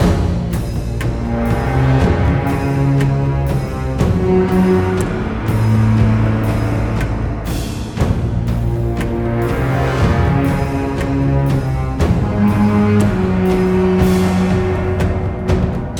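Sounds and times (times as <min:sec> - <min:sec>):
string instrument: 0:00.0 - 0:15.9.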